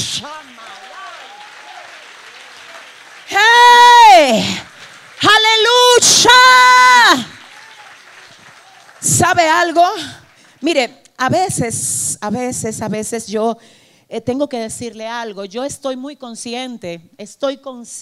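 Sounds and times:
audience applause: 0.0s - 10.6s
speech: 0.2s - 0.7s, 4.2s - 7.4s, 9.0s - 18.0s.

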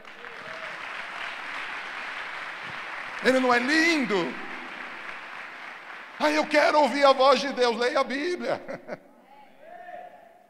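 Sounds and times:
audience applause: 0.0s - 8.4s
speech: 3.2s - 4.4s, 6.2s - 9.1s
laughter: 8.2s - 9.2s.

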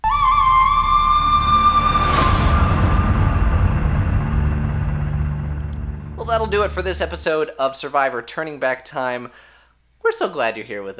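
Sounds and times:
bright sustained tone in a show-closing sting: 1.0s - 7.4s
low rumbling texture: 1.7s - 7.4s
whooshing sweep: 1.8s - 7.3s
speech: 6.3s - 10.9s.

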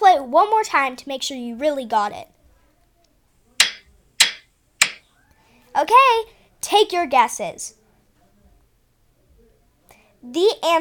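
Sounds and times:
speech: 0.3s - 2.4s, 5.8s - 7.8s, 10.2s - 10.7s
hammers hitting nails: 3.6s - 5.0s.

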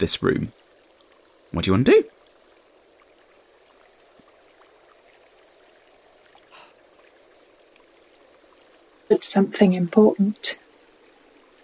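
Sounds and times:
speech: 0.0s - 0.6s, 1.5s - 2.1s, 9.1s - 10.6s
rushing of the Tidewater: 0.0s - 11.6s.

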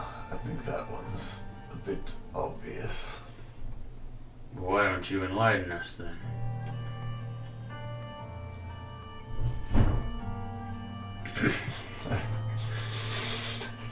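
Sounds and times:
low electrical hum: 0.0s - 13.8s
speech: 0.4s - 3.1s, 5.0s - 6.4s
door bumped open by a cat: 9.4s - 10.3s.

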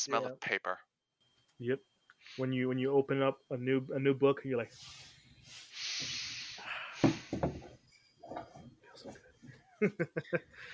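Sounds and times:
speech: 0.0s - 0.9s, 1.6s - 6.2s, 9.8s - 10.7s
person exhaling in discontent: 5.5s - 7.3s
laughter: 9.5s - 10.7s.

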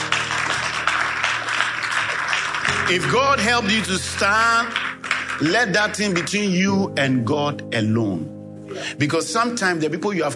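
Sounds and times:
audience clapping: 0.0s - 6.6s
speech: 2.9s - 4.8s, 5.4s - 10.3s.

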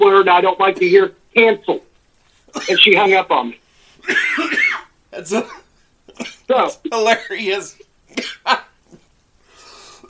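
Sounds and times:
speech: 0.0s - 1.9s, 2.5s - 8.7s
person coughing after choking on coffee: 2.5s - 2.9s, 4.0s - 7.5s, 8.1s - 9.0s
raspy breath: 9.4s - 10.0s.

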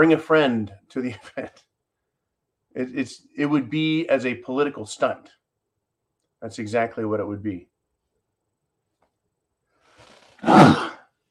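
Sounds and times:
speech: 0.0s - 1.7s, 2.8s - 5.4s, 6.4s - 7.7s, 10.4s - 10.8s
sneeze: 10.4s - 11.1s.

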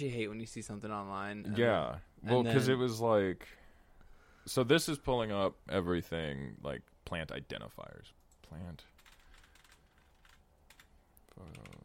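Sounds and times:
speech: 0.0s - 3.6s, 4.5s - 8.9s, 11.4s - 11.8s
typing on a keyboard: 8.9s - 11.8s.

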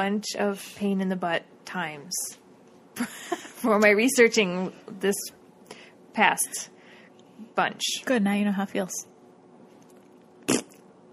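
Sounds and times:
speech: 0.0s - 2.4s, 3.0s - 5.4s, 6.2s - 6.8s, 7.5s - 9.1s
fart: 10.4s - 10.8s.

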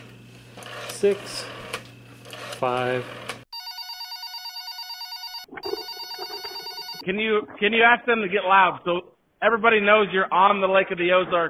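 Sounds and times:
speech: 1.0s - 1.6s, 2.6s - 3.2s, 7.1s - 11.4s
electronic telephone ring: 3.5s - 7.0s.

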